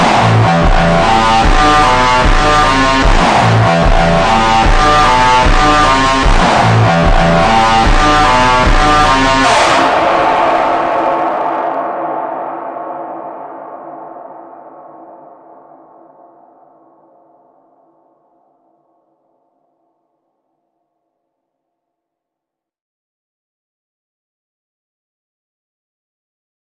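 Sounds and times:
slowed funk music with reverb: 0.0s - 11.6s.

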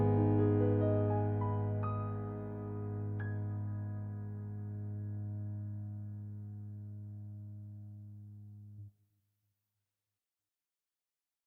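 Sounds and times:
piano cover: 0.0s - 7.8s.

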